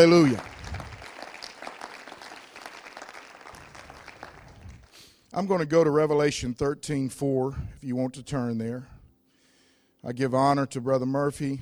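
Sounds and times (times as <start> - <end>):
speech: 0.0 - 0.5, 5.4 - 8.9, 10.0 - 11.6
audience hand clapping: 0.0 - 5.0.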